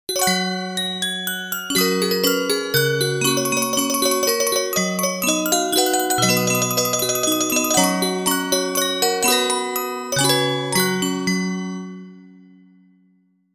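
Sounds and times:
cute background music: 0.1 - 12.8.

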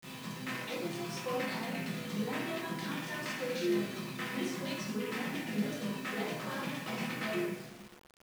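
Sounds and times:
karaoke backing music: 0.0 - 7.8.

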